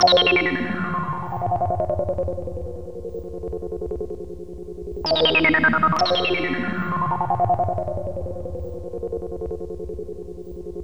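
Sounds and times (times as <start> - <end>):
synth: 0.0 - 2.6, 5.1 - 8.3.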